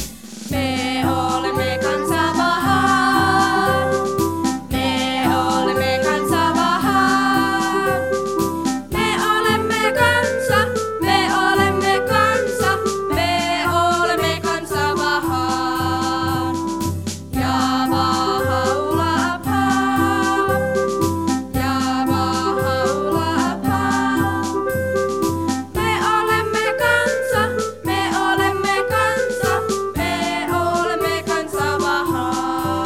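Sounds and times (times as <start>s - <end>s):
song: 0.1s - 32.8s.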